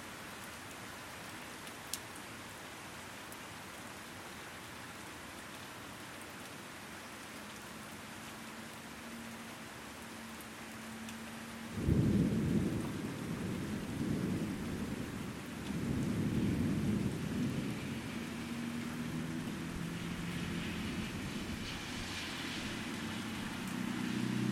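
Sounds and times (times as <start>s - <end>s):
sudden Fort Wayne thunderstorm: 11.7s - 24.4s.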